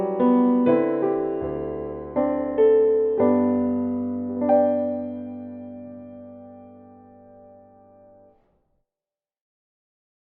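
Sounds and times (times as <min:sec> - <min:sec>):
E minor piano accompaniment: 0:00.0 - 0:08.4.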